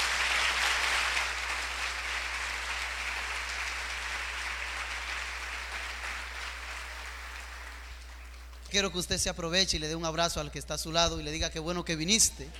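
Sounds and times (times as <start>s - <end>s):
audience applause: 0.0s - 8.7s
speech: 8.7s - 12.5s.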